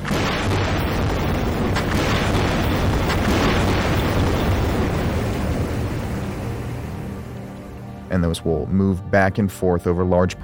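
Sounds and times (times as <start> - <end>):
seismic survey boat air guns firing underwater: 0.0 - 7.7
speech: 8.2 - 10.4.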